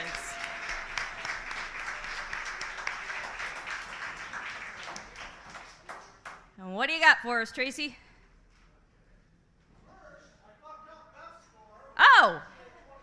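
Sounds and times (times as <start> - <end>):
audience clapping: 0.0 - 6.5
speech: 6.8 - 8.0.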